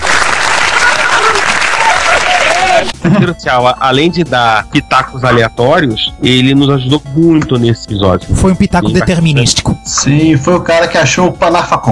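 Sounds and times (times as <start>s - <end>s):
crowd applause: 0.0s - 3.0s
speech: 3.1s - 11.8s.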